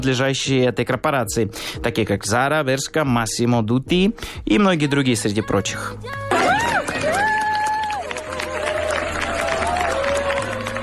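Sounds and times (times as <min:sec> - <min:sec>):
speech: 0:00.0 - 0:06.6
office workers cheering and shouting: 0:06.1 - 0:10.8
applause from office workers: 0:06.3 - 0:10.8.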